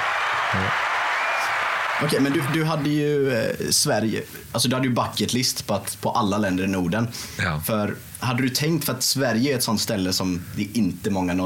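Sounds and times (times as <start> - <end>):
crowd cheering and clapping: 0.0 - 3.0
speech: 2.0 - 11.4.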